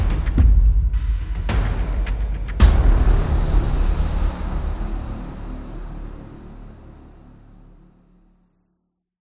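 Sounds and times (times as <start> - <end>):
tribal drums: 0.0 - 5.7.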